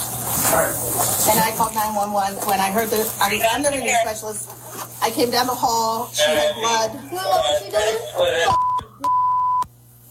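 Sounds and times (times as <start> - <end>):
speech: 0.5 - 8.6
censor bleep over a word: 8.5 - 9.7.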